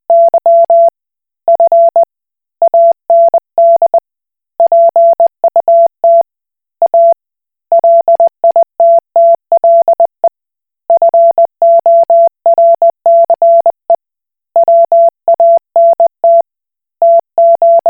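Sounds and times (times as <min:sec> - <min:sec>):
Koch Morse code beeps: 0:00.1 - 0:00.9, 0:01.5 - 0:04.0, 0:04.6 - 0:06.2, 0:06.8 - 0:10.3, 0:11.0 - 0:13.8, 0:14.6 - 0:16.4, 0:17.0 - 0:17.8.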